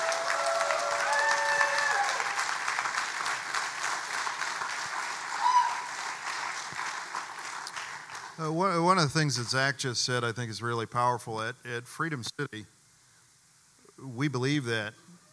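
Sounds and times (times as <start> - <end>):
round of applause: 0.0 - 8.6
speech: 8.4 - 12.8, 14.0 - 15.0.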